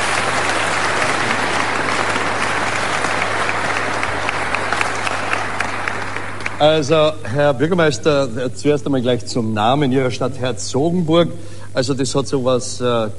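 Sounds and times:
audience applause: 0.0 - 7.0
speech: 6.6 - 13.1.

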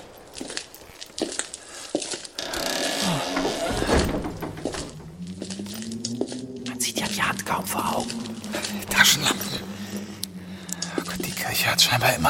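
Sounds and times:
heavy church door creaking open: 2.3 - 10.2
heavy church door thunks and knocks: 2.4 - 5.3
speech: 7.7 - 9.4, 11.6 - 12.2.

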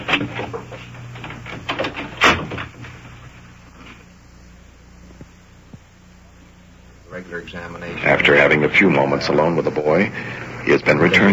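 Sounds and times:
door being shut: 0.0 - 3.0
speech: 7.4 - 11.3.

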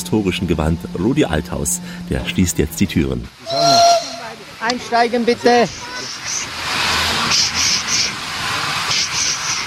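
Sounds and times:
speech: 0.0 - 3.9, 4.6 - 6.4
old steam locomotive built in 1925 in Winterthur hissing steam: 3.4 - 4.3, 5.6 - 9.6
faint high whistling tones: 3.5 - 4.2.

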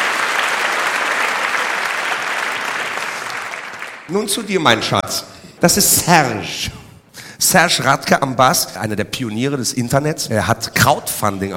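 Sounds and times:
audience applause: 0.0 - 4.1
speech: 4.1 - 6.8, 7.4 - 11.5.

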